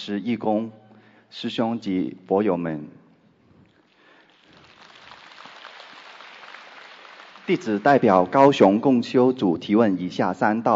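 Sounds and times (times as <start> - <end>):
speech: 0.0 - 3.0, 7.5 - 10.7
crowd applauding: 3.9 - 8.6.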